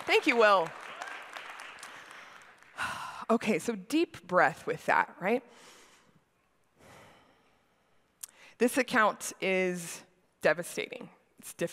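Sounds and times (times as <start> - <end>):
audience clapping: 0.0 - 3.0
speech: 0.1 - 0.8, 2.8 - 5.7, 8.6 - 11.7.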